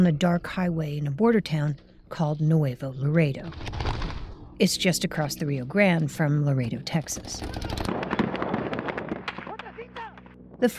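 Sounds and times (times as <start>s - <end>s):
speech: 0.0s - 3.8s, 4.6s - 7.8s, 10.6s - 10.7s
gunfire from soldiers in army vehicle: 7.4s - 9.8s.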